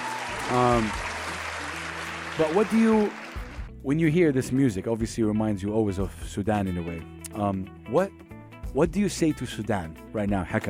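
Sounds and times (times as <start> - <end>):
applause: 0.0 - 3.7
speech: 0.5 - 1.1, 2.4 - 3.2, 3.8 - 10.6.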